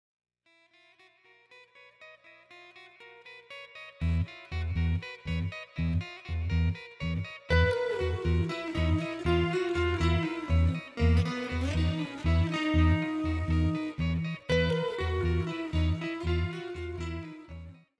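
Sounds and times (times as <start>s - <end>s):
raga music: 4.0s - 17.8s.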